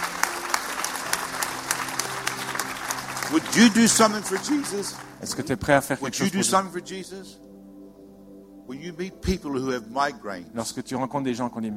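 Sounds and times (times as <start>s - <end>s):
audience applause in a church service: 0.0s - 6.6s
speech: 3.3s - 7.5s, 8.7s - 11.7s.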